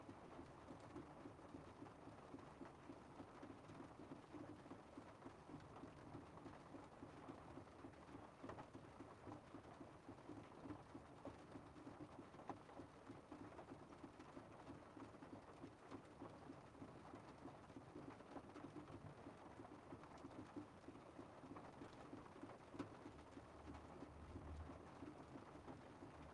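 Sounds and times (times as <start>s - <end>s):
light rain on the roof of a VW Golf car interior: 0.0s - 26.3s.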